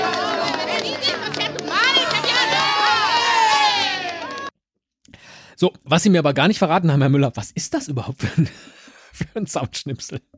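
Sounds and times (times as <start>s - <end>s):
bullfight crowd cheering: 0.0s - 4.6s
speech: 5.6s - 10.3s
laughter: 8.2s - 9.3s.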